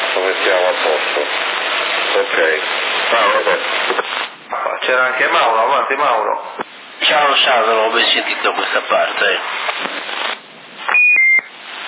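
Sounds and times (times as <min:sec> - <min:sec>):
noisy crackling radio-like background: 0:00.0 - 0:11.8
speech: 0:00.2 - 0:01.5, 0:02.1 - 0:04.0, 0:04.6 - 0:10.4
high-pitched electronic double beep radio signal: 0:10.9 - 0:11.5.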